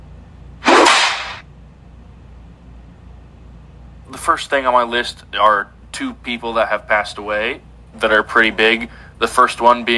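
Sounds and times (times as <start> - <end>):
whip crack sound effect: 0.6 - 1.4
speech: 4.1 - 9.9.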